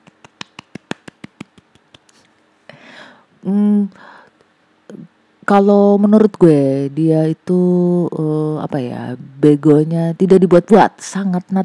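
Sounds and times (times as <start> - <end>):
hand clapping: 0.0 - 2.3
speech: 3.4 - 4.1, 5.5 - 11.6.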